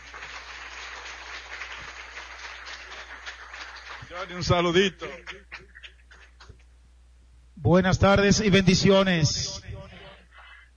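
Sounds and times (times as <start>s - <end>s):
audience applause: 0.0s - 5.6s
speech: 4.1s - 5.8s, 7.6s - 9.6s.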